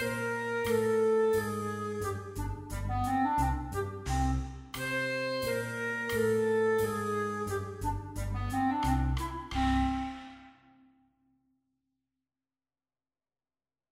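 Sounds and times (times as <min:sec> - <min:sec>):
progressive duet: 0:00.0 - 0:10.6.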